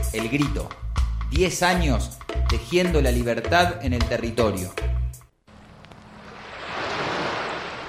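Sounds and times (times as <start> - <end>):
speech: 0.2 - 4.8
rushing floodwater from an overflowing stream: 5.5 - 7.8.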